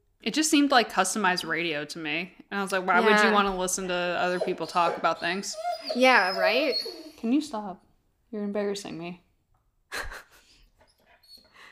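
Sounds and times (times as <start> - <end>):
speech: 0.2 - 9.2
dog whimpering and whining: 3.0 - 7.4, 10.8 - 11.6
dog snorting: 3.3 - 7.2.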